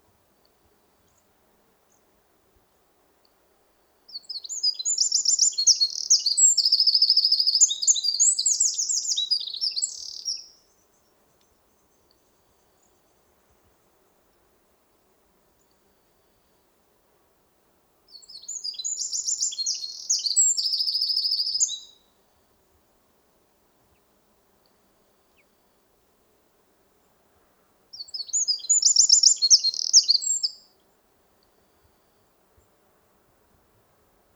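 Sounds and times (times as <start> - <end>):
Eurasian wren singing: 4.2 - 10.5, 18.1 - 21.9, 27.9 - 30.6.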